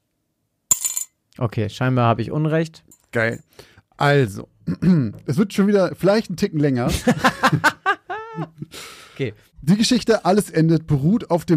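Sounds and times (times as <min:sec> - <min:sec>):
euro coin dropping into a small cup: 0:00.7 - 0:01.2
speech: 0:01.4 - 0:07.8, 0:08.4 - 0:11.5
laughter: 0:06.8 - 0:08.7.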